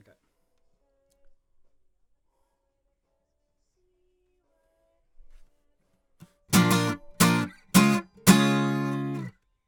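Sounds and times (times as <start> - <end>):
acoustic guitar comping: 6.6 - 9.3.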